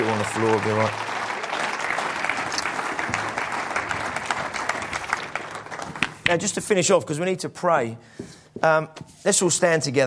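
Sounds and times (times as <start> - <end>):
audience applause: 0.0 - 6.5
speech: 0.2 - 1.1, 6.3 - 10.0.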